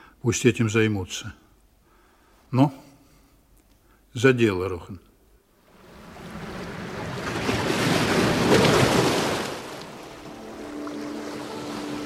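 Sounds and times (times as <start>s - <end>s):
speech: 0.2s - 1.4s, 2.5s - 2.8s, 4.2s - 5.1s
ocean surf breaking: 5.7s - 12.0s.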